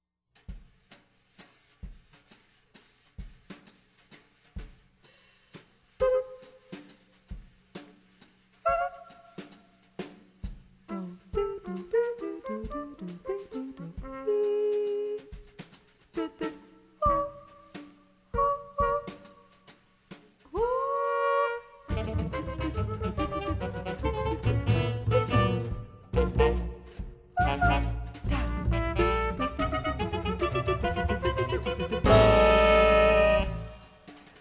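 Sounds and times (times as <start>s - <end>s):
waltz rhythm: 10.1s - 21.3s, 21.9s - 34.0s.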